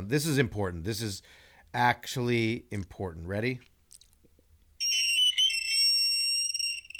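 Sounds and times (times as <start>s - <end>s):
speech: 0.0s - 3.7s
blackboard screeching sound effect: 4.8s - 6.9s.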